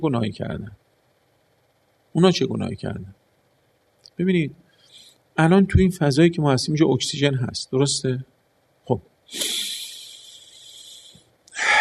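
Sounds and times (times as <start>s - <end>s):
speech: 0.0s - 0.8s, 2.1s - 3.2s, 4.1s - 4.6s, 5.4s - 9.5s
person inhaling sharply: 4.7s - 5.2s, 9.3s - 11.7s
person exhaling: 9.3s - 11.7s.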